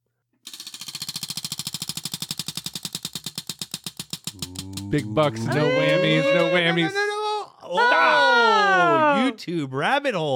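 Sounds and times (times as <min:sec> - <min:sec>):
spinning prize wheel ratcheting clicks: 0:00.5 - 0:06.7
laughter: 0:04.4 - 0:09.4
speech: 0:04.9 - 0:07.0, 0:07.7 - 0:10.3.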